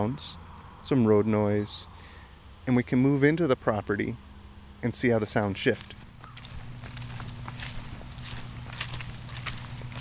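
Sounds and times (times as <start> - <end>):
speech: 0.0 - 1.9, 2.6 - 6.0
crunching footsteps while walking outdoors: 5.2 - 9.9.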